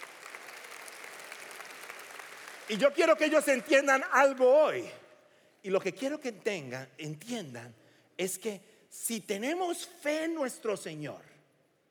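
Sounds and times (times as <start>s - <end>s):
audience applause at a religious gathering honoring children: 0.0s - 3.9s
speech: 2.7s - 5.0s, 5.6s - 11.3s.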